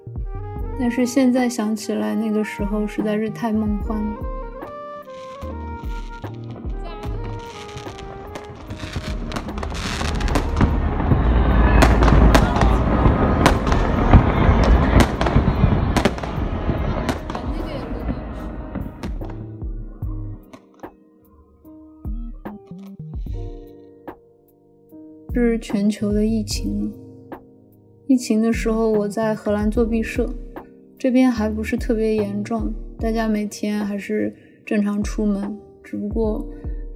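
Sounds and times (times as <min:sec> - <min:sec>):
speech: 0:00.8 - 0:04.4, 0:25.4 - 0:27.0, 0:28.1 - 0:30.4, 0:31.0 - 0:36.9
fireworks exploding: 0:05.0 - 0:19.6.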